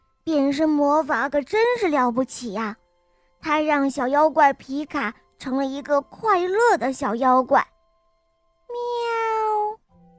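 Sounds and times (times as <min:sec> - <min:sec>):
speech: 0:00.2 - 0:02.8, 0:03.4 - 0:07.7
cat meowing: 0:08.7 - 0:09.8.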